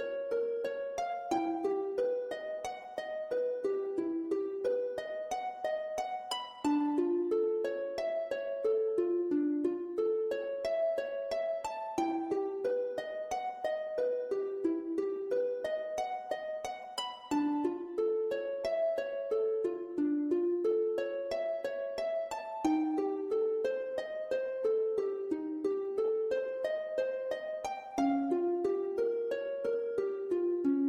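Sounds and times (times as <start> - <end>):
virtual harp: 0.0 - 30.8.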